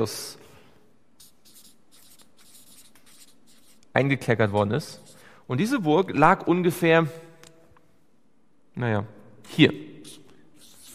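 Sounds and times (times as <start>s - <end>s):
speech: 0.0s - 0.4s, 4.0s - 7.2s, 8.8s - 9.9s
writing the name Machaeus: 1.2s - 5.3s, 9.5s - 10.9s.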